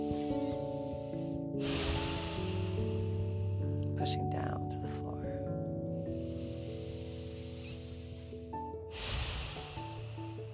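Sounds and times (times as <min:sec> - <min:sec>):
deep breath drawn in through the stomach: 0:00.0 - 0:04.0, 0:05.9 - 0:10.5
speech: 0:04.0 - 0:04.6.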